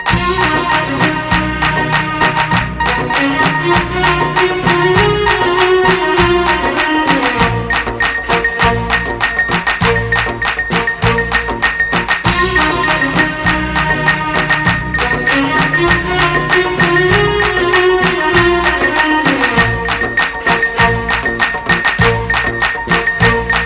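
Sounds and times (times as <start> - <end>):
classic Arab music: 0.0 - 23.6.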